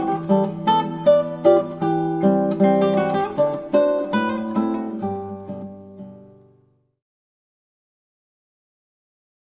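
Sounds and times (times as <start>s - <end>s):
gavotte on guitar: 0.0s - 7.0s.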